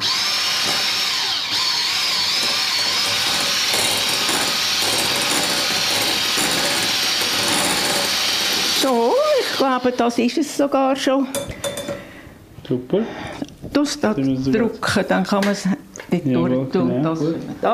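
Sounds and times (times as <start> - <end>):
electric kitchen mixer blending cream: 0.0 - 10.0
speech: 9.7 - 11.5, 12.7 - 17.7.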